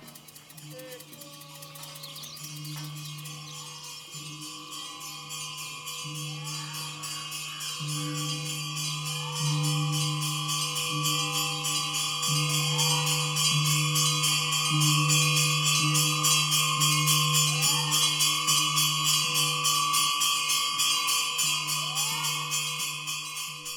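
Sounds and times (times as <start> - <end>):
rapid rhythmic pulsing: 0.0 - 23.7
temple bells ringing in Sri Lanka: 0.6 - 23.7.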